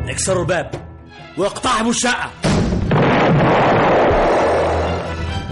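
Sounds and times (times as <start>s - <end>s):
speech: 0.2s - 0.8s, 1.4s - 2.5s
explosion in an apartment building: 2.5s - 5.4s.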